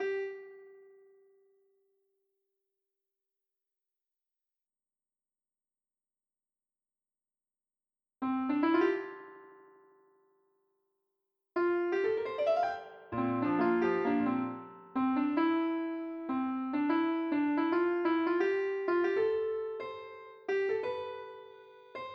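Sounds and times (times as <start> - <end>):
piano: 0.0 - 1.1, 8.2 - 10.0, 11.6 - 22.1.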